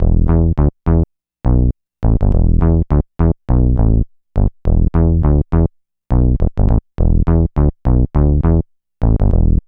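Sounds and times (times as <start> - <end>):
bass: 0.0 - 9.6.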